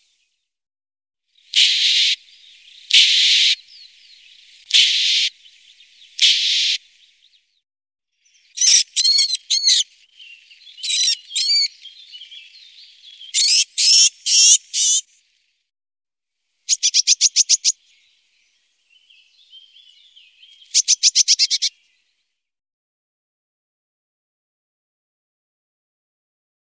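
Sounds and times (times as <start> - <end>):
birds: 1.4 - 7.6, 8.2 - 15.6, 16.7 - 22.4.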